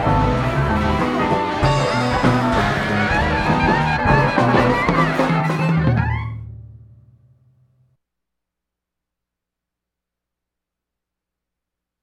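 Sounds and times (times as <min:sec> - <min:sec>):
music groove: 0:00.0 - 0:07.3.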